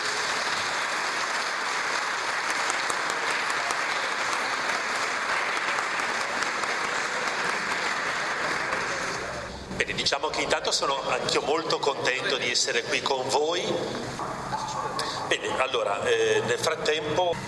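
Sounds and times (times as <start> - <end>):
crowd applauding: 0.0 - 9.5
speech: 10.0 - 14.6, 15.3 - 17.4.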